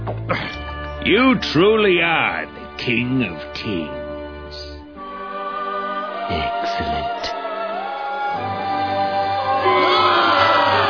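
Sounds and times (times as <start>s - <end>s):
speech: 0.2s - 4.6s, 6.3s - 7.4s
large crowd chanting a sustained vowel in unison: 5.2s - 10.8s.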